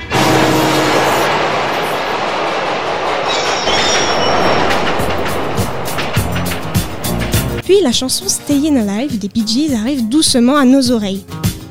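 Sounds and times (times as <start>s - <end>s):
city traffic noise: 0.0s - 7.6s
screeching subway wheels: 0.0s - 7.6s
subway train rumbling: 0.0s - 9.9s
speech: 7.8s - 11.4s.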